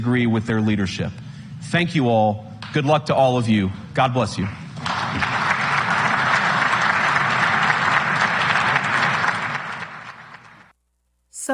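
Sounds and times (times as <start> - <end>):
speech: 0.0 - 4.6
audience applause after a speech: 4.7 - 10.7.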